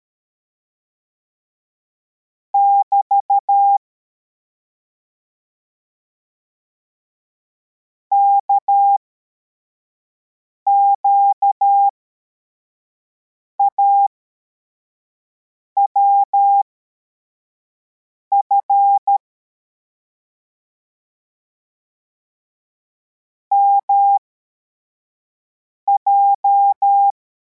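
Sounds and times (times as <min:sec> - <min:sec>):
CW morse code beeps: 0:02.6 - 0:03.8, 0:08.1 - 0:09.0, 0:10.7 - 0:11.9, 0:13.6 - 0:14.1, 0:15.9 - 0:16.7, 0:18.3 - 0:19.2, 0:23.5 - 0:24.2, 0:25.9 - 0:27.2.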